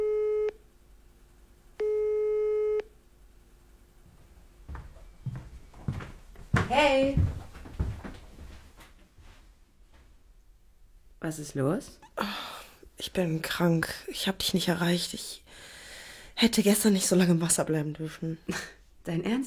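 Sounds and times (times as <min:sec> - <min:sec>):
telephone line tone while calling: 0:00.0 - 0:00.6, 0:01.8 - 0:02.9
speech: 0:06.7 - 0:07.4, 0:11.2 - 0:12.3, 0:13.0 - 0:15.7, 0:16.4 - 0:19.4.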